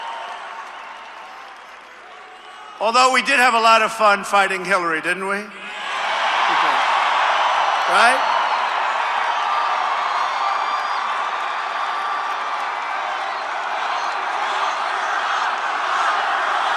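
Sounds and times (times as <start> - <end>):
scattered cheers: 0.0 - 3.2, 5.6 - 16.7
speech: 2.8 - 5.6, 7.9 - 8.3
large rally crowd shouting a chant: 12.8 - 16.7.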